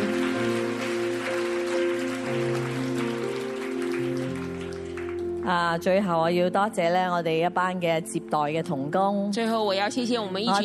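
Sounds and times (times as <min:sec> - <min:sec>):
audience applause: 0:00.0 - 0:05.5
speech: 0:05.5 - 0:10.6.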